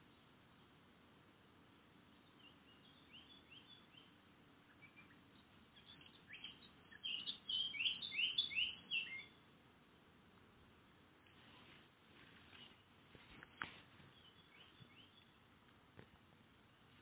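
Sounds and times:
Eurasian blackcap Sylvia atricapilla singing rapid warbled and slurred whistled notes: 2.2 - 9.4, 14.1 - 15.4.

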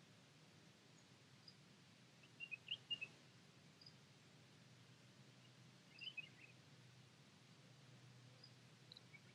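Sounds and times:
European robin singing Erithacus rubecula: 2.3 - 3.1, 5.9 - 6.6, 8.4 - 9.3.

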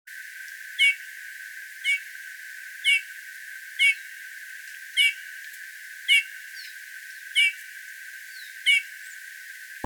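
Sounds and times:
Eurasian bullfinch piping whistles: 3.8 - 4.0, 5.0 - 5.2, 6.1 - 6.7, 7.3 - 7.6, 8.4 - 8.9.

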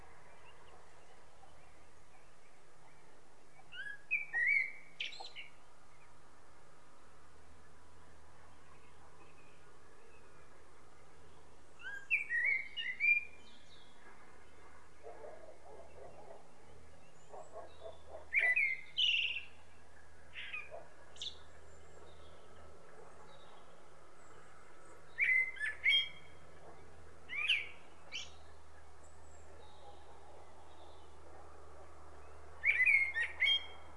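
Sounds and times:
common blackbird singing: 0.3 - 5.6, 11.2 - 14.0, 15.1 - 19.6, 20.3 - 22.6, 25.1 - 30.1, 32.6 - 33.9.

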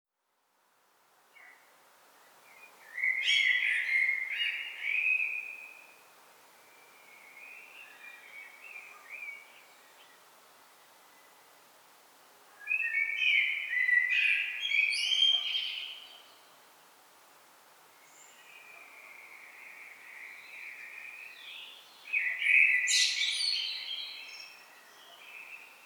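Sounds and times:
common blackbird singing: 2.9 - 5.8, 12.6 - 16.3, 18.9 - 25.8.

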